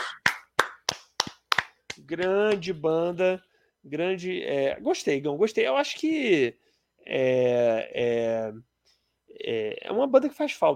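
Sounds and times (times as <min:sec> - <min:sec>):
hand clapping: 0:00.0 - 0:02.8
speech: 0:02.1 - 0:08.7, 0:09.3 - 0:10.7.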